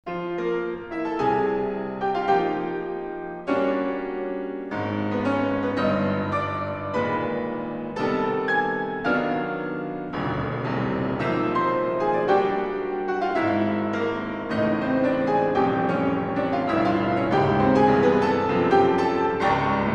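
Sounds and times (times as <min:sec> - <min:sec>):
piano suite: 0:00.0 - 0:19.9.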